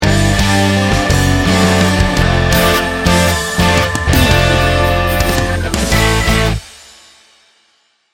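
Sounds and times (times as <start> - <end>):
river ride music sting bumper: 1.0 - 6.8.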